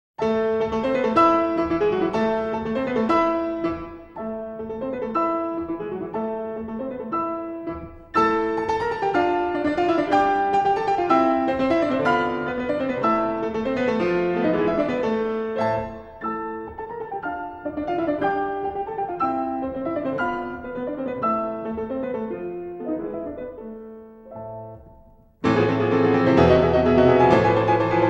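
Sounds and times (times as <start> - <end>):
piano: 0.2 - 28.0.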